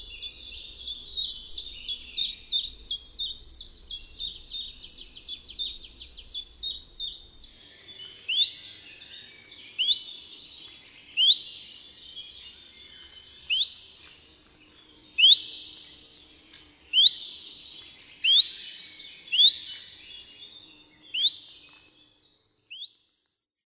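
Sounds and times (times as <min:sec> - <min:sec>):
birds singing: 0:00.0 - 0:23.0.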